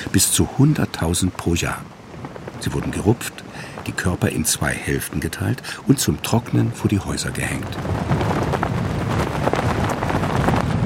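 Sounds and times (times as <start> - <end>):
anorak and rain trousers flapping in storm wind: 0.0 - 10.8
storm-strength wind gusts on St. Kilda Scotland: 0.0 - 10.8
speech: 0.1 - 2.0, 2.6 - 8.3.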